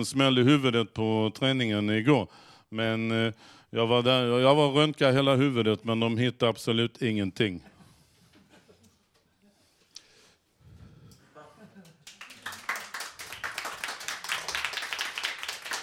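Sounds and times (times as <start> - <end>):
speech: 0.0 - 7.7
laughter: 7.6 - 9.1, 11.4 - 12.4
audience applause: 11.8 - 15.8.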